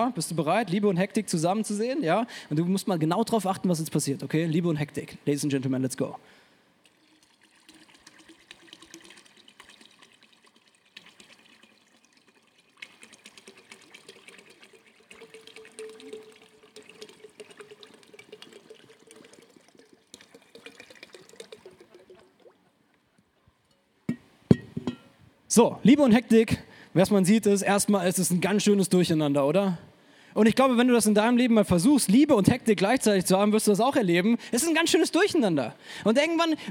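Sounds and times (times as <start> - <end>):
speech: 0.0 - 6.4, 25.6 - 36.7
liquids poured together into a glass: 6.8 - 22.6
glass clinking: 24.1 - 25.2.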